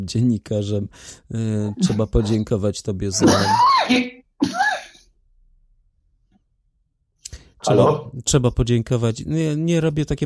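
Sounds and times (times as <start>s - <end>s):
speech: 0.0s - 4.2s, 7.6s - 10.2s
laughter: 1.8s - 2.4s
cough: 3.2s - 5.1s.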